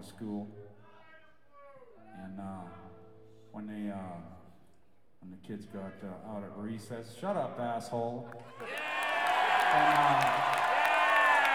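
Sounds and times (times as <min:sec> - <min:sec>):
speech: 0:00.0 - 0:00.7, 0:03.6 - 0:04.4, 0:05.2 - 0:08.9, 0:09.7 - 0:10.7
crowd cheering and whooping: 0:08.5 - 0:11.5.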